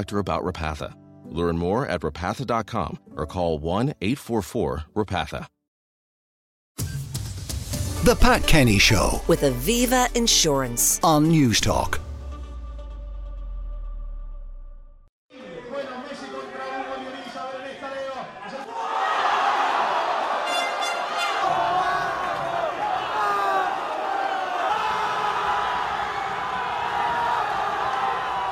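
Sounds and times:
speech: 0.0s - 5.6s, 8.0s - 12.0s
street partying crowds in Argentina celebrating the 2022 World Cup win: 15.4s - 28.4s.

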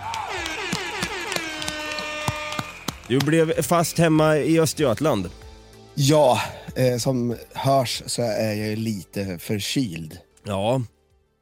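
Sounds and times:
applause: 0.0s - 3.8s
horn honk: 0.0s - 3.9s
speech: 3.1s - 5.4s, 6.0s - 11.0s.

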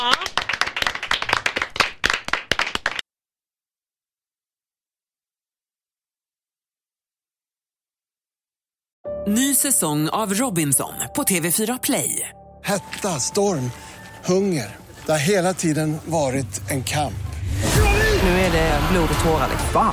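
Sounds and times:
small group clapping: 0.0s - 3.0s
speech: 9.3s - 19.9s.

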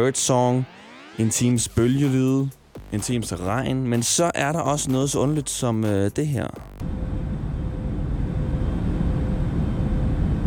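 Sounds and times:
airplane cabin drone of engine and air noise: 0.0s - 1.8s, 6.8s - 10.4s
speech: 0.0s - 7.1s.

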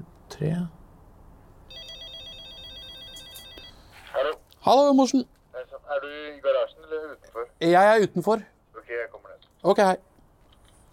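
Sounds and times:
speech: 0.4s - 0.8s, 4.2s - 10.1s
apartment intercom doorbell ringing: 1.7s - 3.8s.

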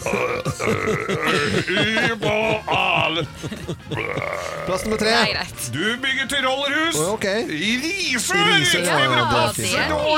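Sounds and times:
person burping a national anthem: 0.0s - 3.2s, 3.8s - 5.3s
laughter: 0.0s - 4.7s, 8.3s - 10.1s
speech: 0.1s - 10.1s.

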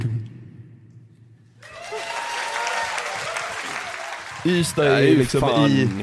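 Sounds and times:
crowd cheering and applause: 1.6s - 6.0s
speech: 4.4s - 6.0s.

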